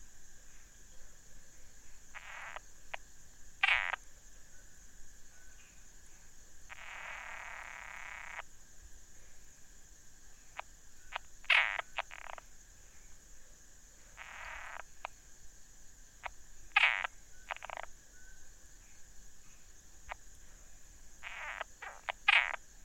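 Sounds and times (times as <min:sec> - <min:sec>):
frog croaking: 0:02.0 - 0:03.0, 0:03.6 - 0:04.1, 0:06.7 - 0:08.5, 0:10.4 - 0:12.6, 0:14.1 - 0:15.2, 0:16.2 - 0:22.8.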